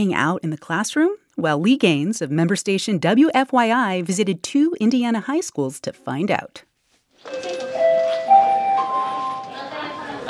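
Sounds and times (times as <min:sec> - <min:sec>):
speech: 0:00.0 - 0:07.6
school bell ringing: 0:07.3 - 0:10.2.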